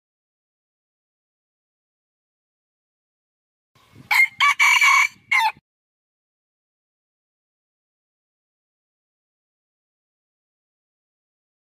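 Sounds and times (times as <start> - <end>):
red junglefowl rooster crowing: 4.1 - 5.6.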